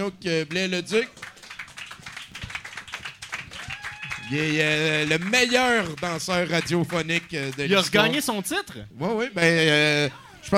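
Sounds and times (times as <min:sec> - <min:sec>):
speech: 0:00.0 - 0:01.2, 0:04.3 - 0:10.5
hand clapping from a small group: 0:00.4 - 0:08.2.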